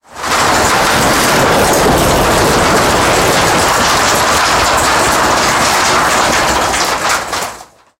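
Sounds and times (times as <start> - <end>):
tank wheel turning: 0.0 - 7.9.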